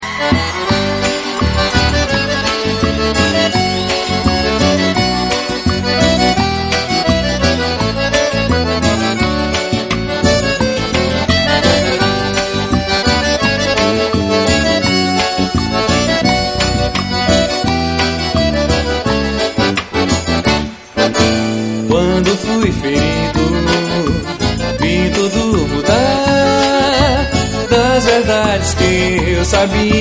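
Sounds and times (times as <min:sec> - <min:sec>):
live xote baião music: 0:00.0 - 0:29.9.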